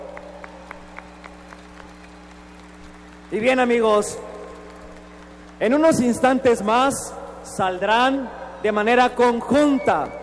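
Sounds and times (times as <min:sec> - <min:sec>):
audience applause: 0:00.0 - 0:07.1
speech: 0:03.3 - 0:04.3, 0:05.6 - 0:10.2.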